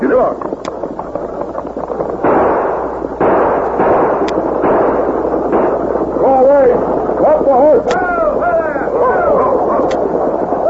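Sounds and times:
speech: 0.1 - 0.6
gunshots fired at stagecoach: 2.1 - 10.5.

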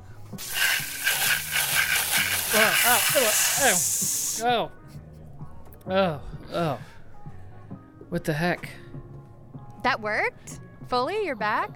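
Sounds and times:
speech: 0.3 - 0.7, 2.5 - 4.8, 5.8 - 6.9, 8.1 - 9.1, 9.8 - 11.7
water spraying from a hose: 0.4 - 4.4.

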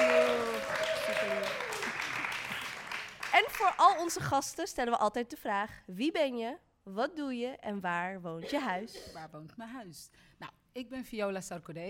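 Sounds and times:
voices cheering: 0.0 - 2.0
crowd applauding: 0.0 - 4.2
speech: 3.6 - 11.8.

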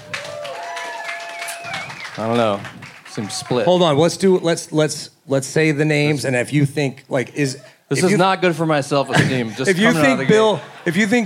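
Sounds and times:
audience applause: 0.0 - 3.9
speech: 2.2 - 11.2
laughter: 7.4 - 11.2.

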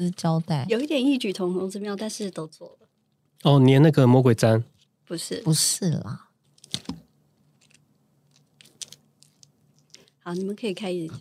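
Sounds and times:
speech: 0.0 - 2.8, 3.4 - 7.0, 10.3 - 11.1
shell being peeled off a century egg: 6.5 - 10.1.

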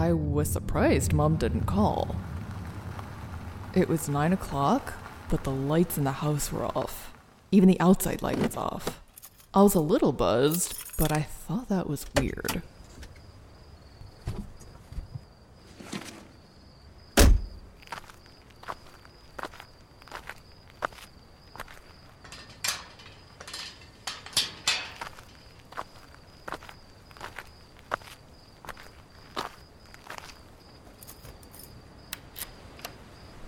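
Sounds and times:
speech: 0.1 - 2.3, 3.7 - 12.7
footsteps walking into the house: 17.8 - 31.3.

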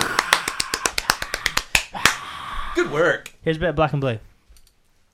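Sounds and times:
light finger claps: 0.0 - 2.3
speech: 2.8 - 4.3.

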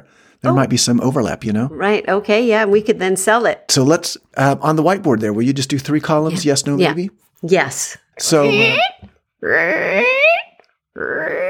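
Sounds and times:
speech: 0.0 - 10.4, 11.0 - 11.4
voice imitating a rumbling stomach: 8.4 - 11.4.

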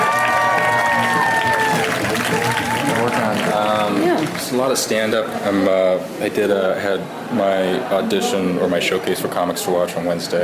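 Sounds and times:
audience clapping and cheering as a stand-up comic is called to the stage: 0.0 - 5.7
speech: 4.5 - 10.4.

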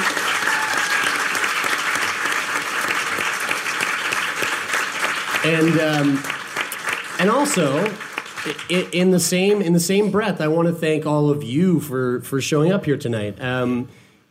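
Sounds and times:
audience round of applause: 0.0 - 9.8
speech: 5.4 - 6.4, 7.2 - 14.0.

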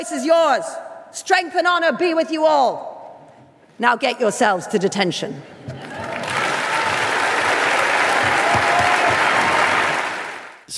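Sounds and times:
speech: 0.0 - 2.9, 3.8 - 5.6
crowd applauding a speech: 5.7 - 10.7.

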